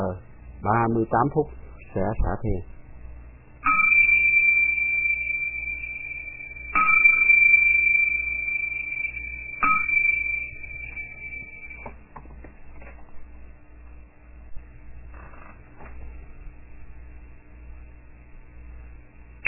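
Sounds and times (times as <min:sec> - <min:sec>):
speech: 0:00.1 - 0:02.7
meditation bell being struck: 0:03.6 - 0:12.0.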